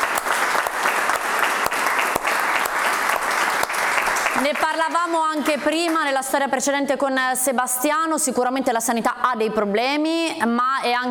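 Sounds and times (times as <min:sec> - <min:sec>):
audience applause: 0:00.0 - 0:05.9
speech: 0:04.4 - 0:11.0.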